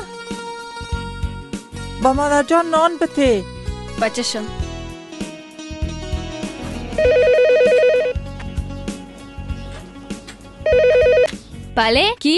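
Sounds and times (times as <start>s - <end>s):
speech: 2.0s - 4.6s, 11.8s - 12.3s
telephone ringing: 7.0s - 8.2s, 10.7s - 11.3s.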